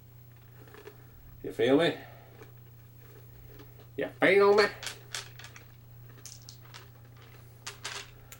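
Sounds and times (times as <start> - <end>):
speech: 1.4 - 2.1, 4.0 - 4.9
many dice rattling in a tabletop game: 4.5 - 8.2.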